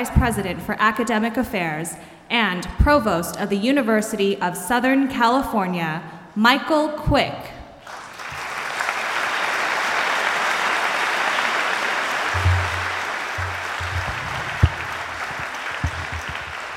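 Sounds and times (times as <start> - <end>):
speech: 0.0 - 7.6
audience applause: 7.9 - 16.7
low thumps: 12.4 - 16.7.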